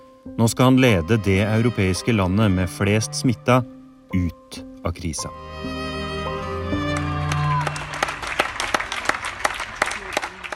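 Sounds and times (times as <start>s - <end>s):
speech: 0.2s - 5.8s
people clapping for health workers: 6.7s - 10.5s.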